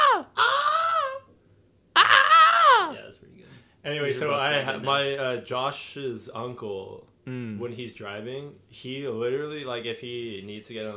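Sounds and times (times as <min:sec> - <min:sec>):
Wilhelm scream sound effect: 0:00.0 - 0:01.2, 0:02.0 - 0:03.0
speech: 0:03.8 - 0:10.9.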